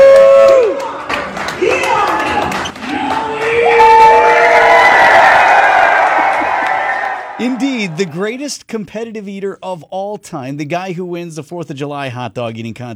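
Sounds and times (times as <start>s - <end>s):
ballpark crowd cheering: 0.0s - 8.5s
speech: 7.4s - 12.9s.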